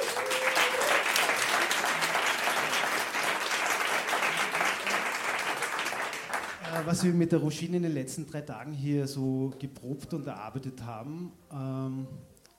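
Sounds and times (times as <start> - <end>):
audience applause: 0.0 - 7.2
speech: 6.8 - 12.3.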